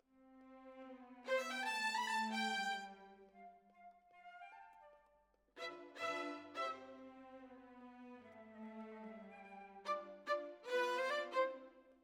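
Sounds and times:
violins: 0:00.2 - 0:03.3, 0:05.6 - 0:11.9.

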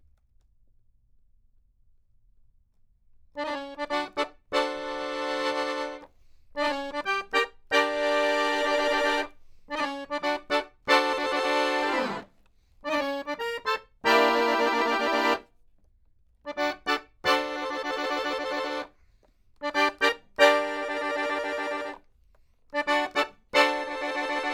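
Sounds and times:
accordion: 0:03.4 - 0:15.5, 0:16.5 - 0:19.0, 0:19.6 - 0:22.1, 0:22.7 - 0:24.5.

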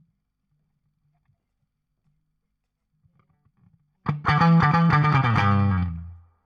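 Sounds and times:
guitar solo: 0:04.1 - 0:06.2.

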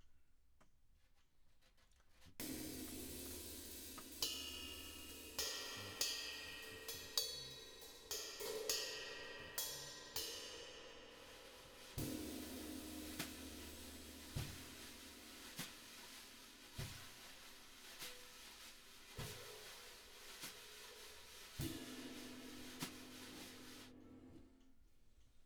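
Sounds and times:
drums: 0:02.1 - 0:25.4.

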